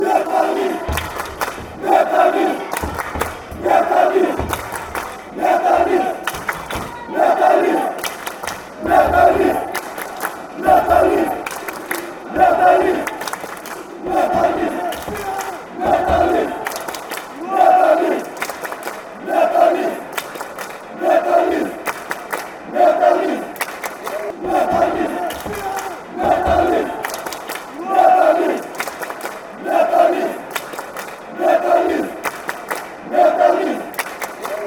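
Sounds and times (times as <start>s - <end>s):
football fans chanting: 0.0s - 34.6s.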